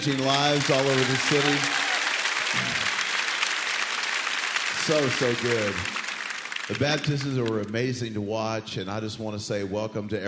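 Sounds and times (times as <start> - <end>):
speech: 0.0 - 1.8, 2.5 - 2.9, 4.8 - 6.0, 6.7 - 10.2
congregation applause during a morning church service: 0.0 - 7.9.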